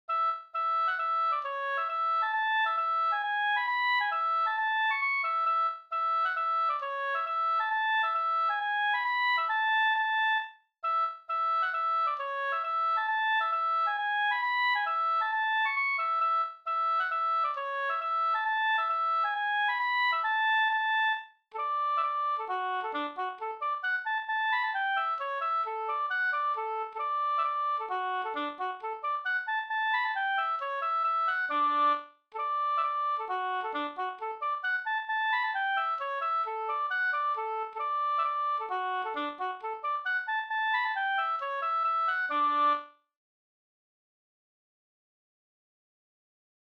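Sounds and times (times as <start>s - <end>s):
hambo polska folk dance tune: 0.1s - 42.9s.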